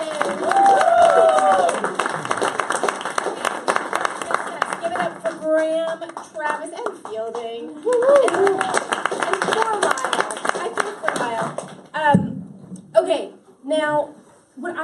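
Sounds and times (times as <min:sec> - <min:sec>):
audience cheers: 0:00.0 - 0:04.4, 0:07.8 - 0:10.4
audience applause welcoming a speaker: 0:00.0 - 0:12.0.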